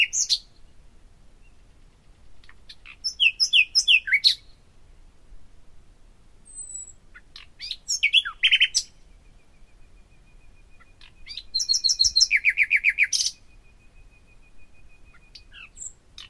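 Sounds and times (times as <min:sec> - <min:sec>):
common nightingale singing: 0:02.7 - 0:04.6, 0:06.5 - 0:16.2.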